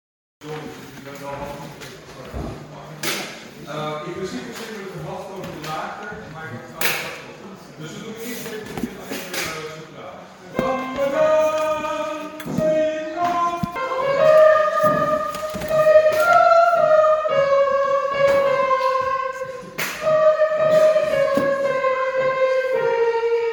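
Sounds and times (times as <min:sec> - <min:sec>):
soprano singing: 0:10.5 - 0:23.5.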